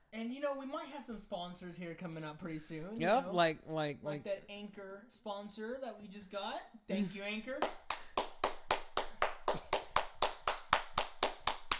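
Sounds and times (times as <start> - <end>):
speech: 0.2 - 7.8
clapping: 7.6 - 11.7.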